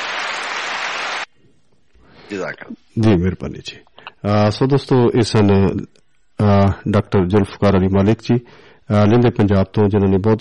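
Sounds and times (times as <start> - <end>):
audience applause at an International Women's Day event: 0.0 - 1.3
speech: 2.3 - 10.3.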